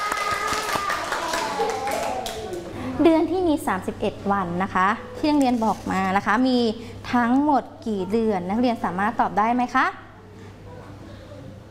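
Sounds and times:
students clapping in a classroom: 0.0s - 2.8s
speech: 3.0s - 10.0s.

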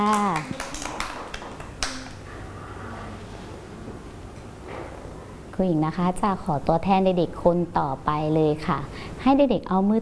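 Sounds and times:
children clapping hands: 0.0s - 2.2s
speech: 5.6s - 10.0s.

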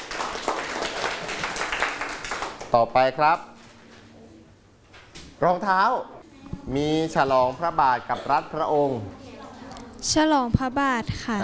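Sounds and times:
students in a classroom clapping for a classmate's correct answer: 0.0s - 2.8s
speech: 2.7s - 3.5s, 5.4s - 9.2s, 10.0s - 11.4s.

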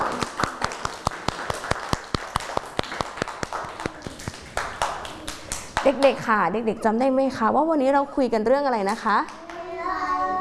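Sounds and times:
children clapping: 0.0s - 6.2s, 9.3s - 9.8s
speech: 5.8s - 9.4s.

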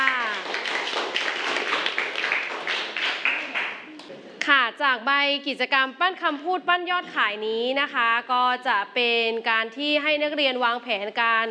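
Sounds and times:
classroom clapping: 0.0s - 4.2s
speech: 4.8s - 11.4s.

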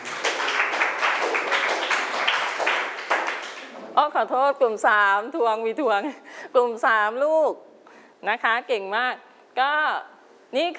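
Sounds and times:
group of people clapping in a class: 0.0s - 3.9s
speech: 4.0s - 10.7s.

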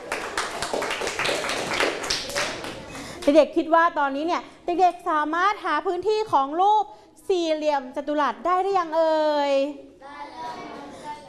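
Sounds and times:
classroom applause, children clapping: 0.0s - 3.3s
speech: 3.3s - 10.2s.

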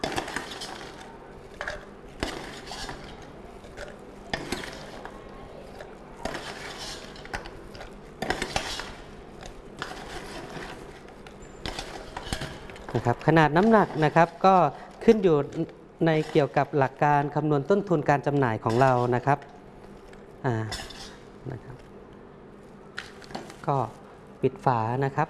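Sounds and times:
spoon scooping contents into a jar: 1.6s - 5.1s, 5.8s - 16.6s, 18.7s - 19.2s, 20.6s - 21.2s
speech: 13.2s - 19.5s, 20.4s - 21.7s, 23.7s - 25.2s.

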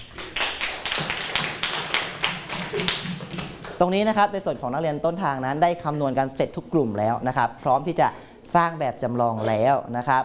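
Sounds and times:
class applauding: 0.0s - 3.8s
speech: 3.8s - 10.2s.

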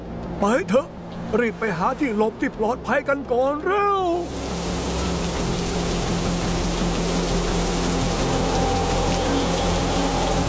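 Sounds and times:
speech: 0.4s - 4.4s
heavy rain during a coastal storm: 4.0s - 10.4s
wind rumbling: 4.2s - 10.4s.

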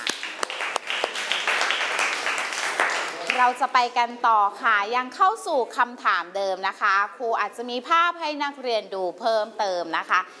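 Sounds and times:
classroom applause: 0.0s - 3.6s
speech: 3.4s - 10.3s.

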